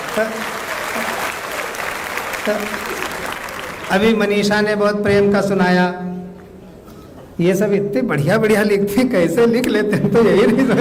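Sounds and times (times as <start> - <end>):
audience applause: 0.0 - 4.4
speech: 0.2 - 0.6, 2.4 - 3.2, 3.9 - 6.2, 7.4 - 10.7.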